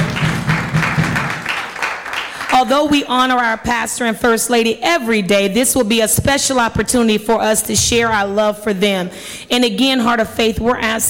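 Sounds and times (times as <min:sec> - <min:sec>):
audience applause: 0:00.0 - 0:02.6
speech: 0:02.6 - 0:11.0.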